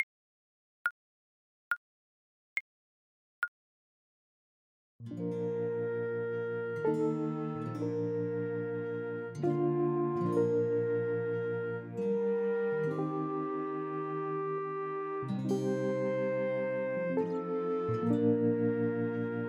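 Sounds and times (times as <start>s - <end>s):
clarinet: 5.1s - 19.4s.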